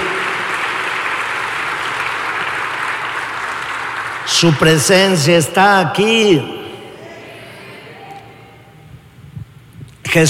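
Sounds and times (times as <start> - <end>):
audience applause: 0.0 - 4.8
speech: 4.3 - 6.6.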